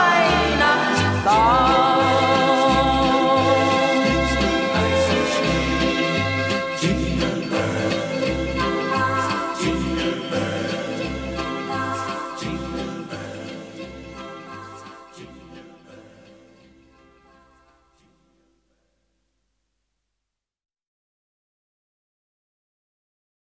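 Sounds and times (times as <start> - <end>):
Christmas song in German: 0.0 - 18.8.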